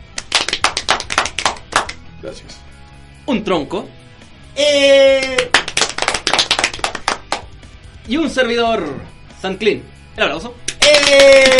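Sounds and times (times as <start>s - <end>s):
applause, hands clapping: 0.0s - 2.1s, 5.1s - 7.7s, 10.6s - 11.5s
speech: 2.2s - 4.0s, 4.6s - 5.7s, 8.1s - 11.5s.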